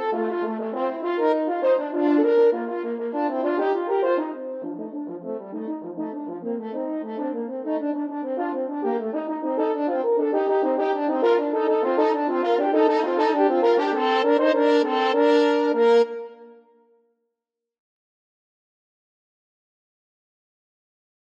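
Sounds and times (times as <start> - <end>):
french horn duet: 0.0 - 16.5.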